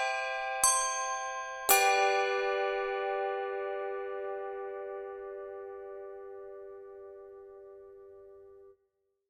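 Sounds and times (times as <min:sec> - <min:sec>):
handbells: 0:00.0 - 0:06.3.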